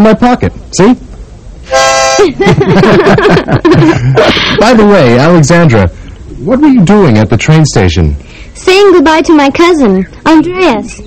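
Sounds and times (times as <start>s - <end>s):
speech: 0.0s - 11.0s
harmonica chord: 1.6s - 2.4s
laughter: 2.2s - 4.8s.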